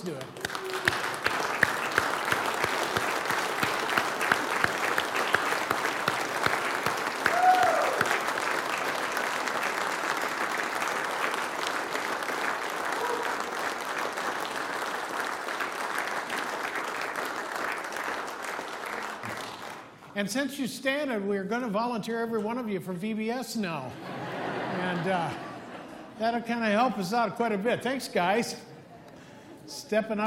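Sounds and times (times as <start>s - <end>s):
speech: 0.0s - 0.4s, 20.2s - 24.2s, 24.8s - 25.5s, 26.2s - 28.6s, 29.9s - 30.2s
round of applause: 0.0s - 20.2s
laughter: 23.9s - 26.2s.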